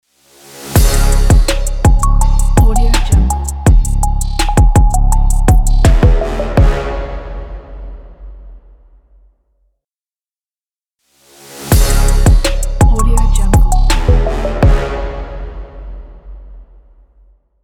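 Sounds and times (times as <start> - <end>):
trap beat logo jingle: 0.8 - 7.5, 11.7 - 15.8.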